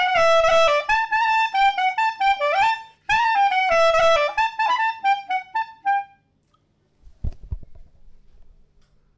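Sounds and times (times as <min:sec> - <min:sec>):
clarinet playing suite airs: 0:00.0 - 0:06.3.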